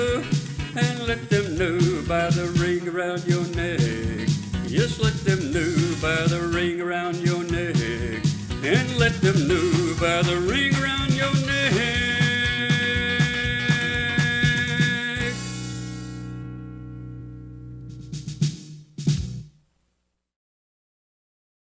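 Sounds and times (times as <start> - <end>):
person singing: 0.0 - 15.6.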